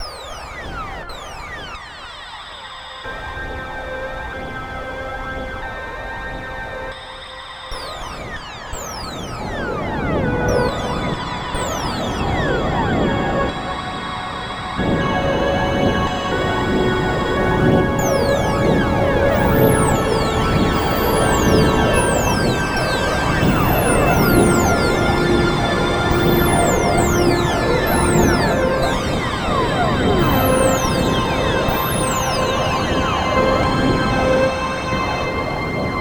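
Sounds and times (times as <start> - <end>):
synth line in C: 10.1 - 35.9.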